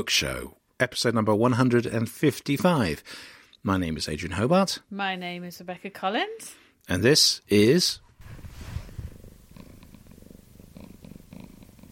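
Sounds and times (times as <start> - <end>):
speech: 0.0 - 8.0
rustle: 8.2 - 11.3
cat purring on a sofa: 8.2 - 11.9.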